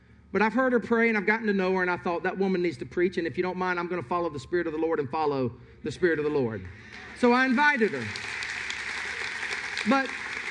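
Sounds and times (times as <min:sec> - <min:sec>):
speech: 0:00.3 - 0:08.4, 0:09.8 - 0:10.2
audience clapping enthusiastically: 0:06.9 - 0:10.4.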